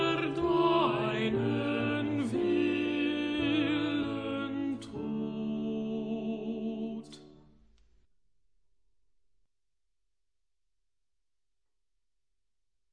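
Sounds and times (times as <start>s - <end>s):
alto voice singing: 0.0s - 7.3s.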